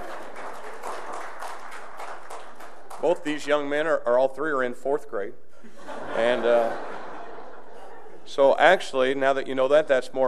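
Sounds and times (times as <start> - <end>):
audience applause for a fourth-grade boy: 0.0 - 3.6
speech: 3.0 - 6.9, 8.3 - 10.2
laughter: 5.6 - 9.1.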